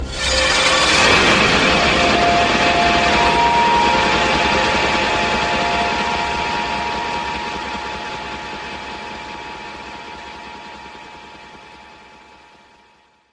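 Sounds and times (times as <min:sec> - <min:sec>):
PS1 startup error sound: 0:00.1 - 0:10.3.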